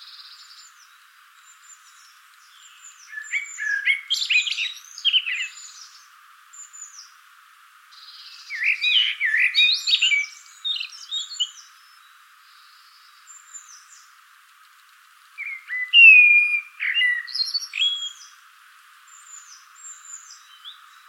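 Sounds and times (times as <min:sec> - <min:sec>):
common blackbird fluty song: 0:00.0 - 0:07.2, 0:07.9 - 0:21.0.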